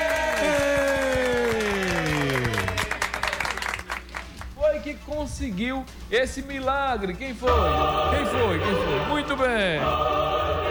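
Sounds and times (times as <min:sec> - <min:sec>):
audience applause: 0:00.0 - 0:04.5
speech: 0:05.1 - 0:10.3.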